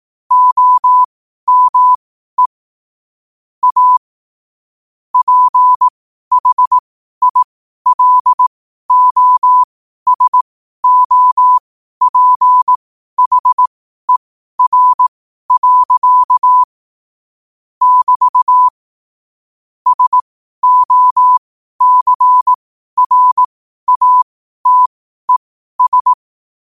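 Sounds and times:
morse code at 5 wpm: 0:00.3 - 0:02.5, 0:03.6 - 0:04.0, 0:05.2 - 0:16.7, 0:17.8 - 0:18.7, 0:19.9 - 0:26.2.

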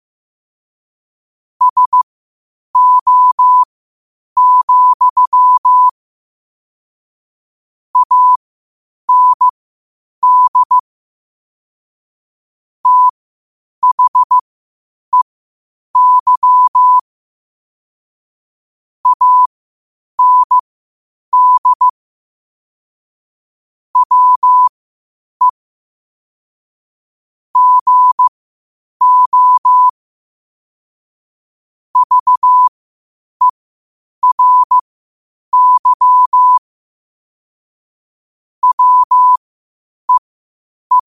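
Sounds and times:
morse code at 5 wpm: 0:01.6 - 0:02.0, 0:02.8 - 0:03.7, 0:04.4 - 0:05.9, 0:08.0 - 0:08.4, 0:09.1 - 0:09.5, 0:10.2 - 0:10.8, 0:12.8 - 0:13.1, 0:13.8 - 0:14.4, 0:16.0 - 0:17.0, 0:19.0 - 0:19.5, 0:20.2 - 0:20.6, 0:21.4 - 0:21.9, 0:24.0 - 0:24.7, 0:27.6 - 0:28.3, 0:29.0 - 0:29.9, 0:32.0 - 0:32.7, 0:34.2 - 0:34.8, 0:35.5 - 0:36.6, 0:38.6 - 0:39.4.

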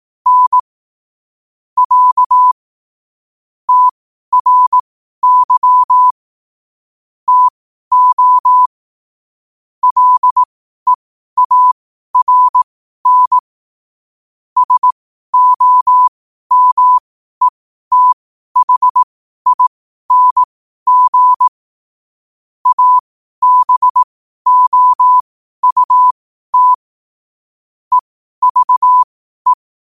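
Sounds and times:
morse code at 5 wpm: 0:00.3 - 0:00.6, 0:01.8 - 0:02.6, 0:03.7 - 0:06.1, 0:07.3 - 0:08.7, 0:09.8 - 0:10.5, 0:11.4 - 0:13.4, 0:14.6 - 0:21.5, 0:22.6 - 0:26.8, 0:27.9 - 0:29.7.

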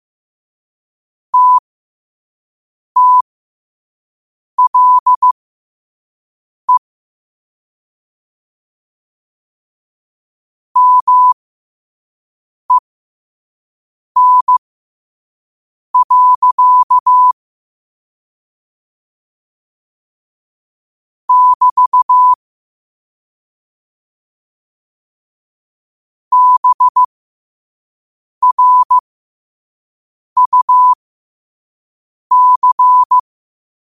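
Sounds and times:
morse code at 5 wpm: 0:01.4 - 0:01.6, 0:03.0 - 0:03.2, 0:04.6 - 0:05.4, 0:10.8 - 0:11.4, 0:14.2 - 0:14.6, 0:16.0 - 0:17.4, 0:21.3 - 0:22.4, 0:26.3 - 0:27.1, 0:28.4 - 0:29.0, 0:30.4 - 0:31.0, 0:32.3 - 0:33.2.

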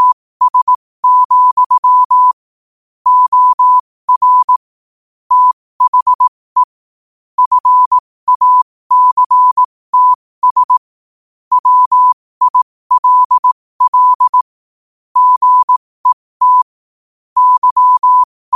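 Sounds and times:
morse code at 5 wpm: 0:00.0 - 0:02.4, 0:03.1 - 0:04.6, 0:05.3 - 0:06.8, 0:07.4 - 0:10.9, 0:11.5 - 0:14.5, 0:15.2 - 0:16.7, 0:17.4 - 0:18.5.

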